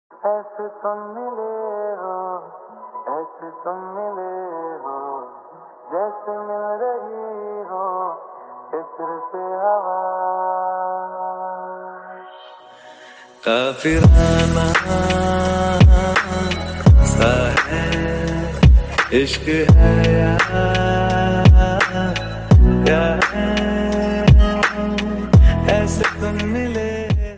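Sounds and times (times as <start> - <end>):
lofi slowed reverb ringtone music: 13.9 - 27.3.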